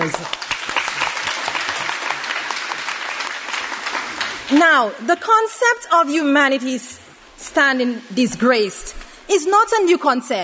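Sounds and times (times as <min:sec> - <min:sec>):
speech: 0:00.0 - 0:00.4, 0:04.5 - 0:07.0, 0:07.6 - 0:10.4
audience applause: 0:00.0 - 0:04.6.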